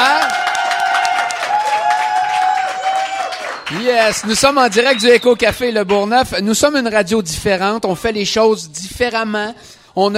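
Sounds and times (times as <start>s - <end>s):
crowd applause: 0.0s - 5.3s
whistles or cheers: 0.1s - 5.7s
speech: 3.9s - 10.1s.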